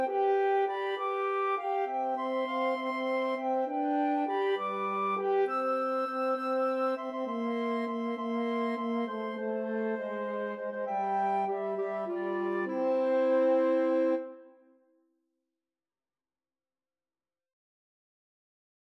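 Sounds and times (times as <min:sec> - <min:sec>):
horn: 0:00.0 - 0:14.6
clarinet: 0:00.0 - 0:14.8
flute: 0:00.0 - 0:14.8.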